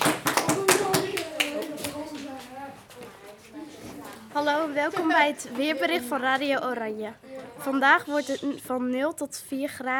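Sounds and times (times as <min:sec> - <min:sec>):
applause, hands clapping: 0:00.0 - 0:02.5
speech: 0:04.4 - 0:09.9.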